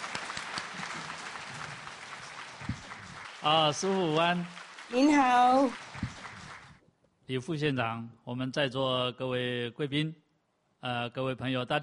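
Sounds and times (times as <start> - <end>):
audience applause welcoming a legislator at a forum on saving the Earth: 0.0 - 6.8
speech: 3.4 - 5.8, 7.3 - 10.2, 10.8 - 11.8.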